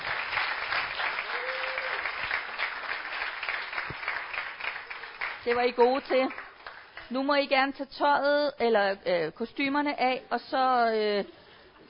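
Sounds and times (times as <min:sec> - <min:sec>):
audience applause for child actors: 0:00.0 - 0:07.0
speech: 0:05.5 - 0:06.4, 0:07.1 - 0:11.8.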